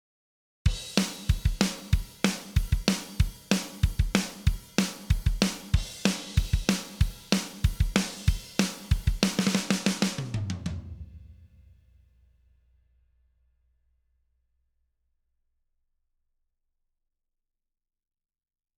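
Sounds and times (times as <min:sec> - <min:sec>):
drums: 0:00.7 - 0:12.1.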